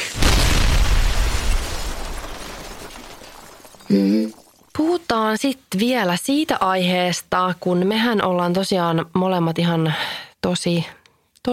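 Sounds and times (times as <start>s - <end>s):
dynamite explosion: 0.0s - 3.9s
crackling debris: 0.0s - 5.1s
speech: 3.9s - 11.5s.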